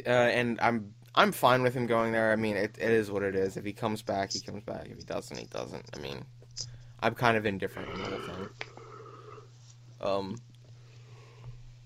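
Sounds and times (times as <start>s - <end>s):
speech: 0.0s - 8.7s, 10.0s - 10.5s
person yawning: 7.8s - 9.5s.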